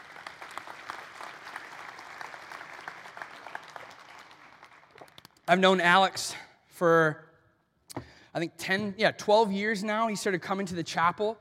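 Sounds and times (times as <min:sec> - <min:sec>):
audience round of applause: 0:00.0 - 0:05.3
speech: 0:05.5 - 0:07.2, 0:08.4 - 0:11.3.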